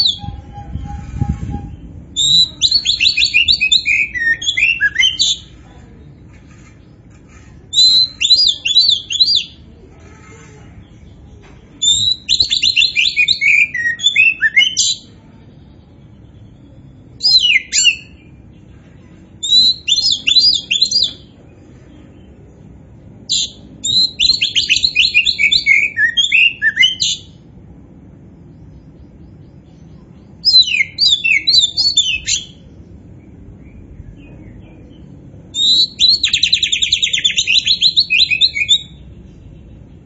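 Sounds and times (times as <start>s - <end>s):
Oriental magpie-robin singing: 0.0s - 5.5s, 7.5s - 9.6s, 11.8s - 15.1s, 19.3s - 21.3s, 23.3s - 27.4s, 28.6s - 40.0s
faint background hum: 0.0s - 40.0s.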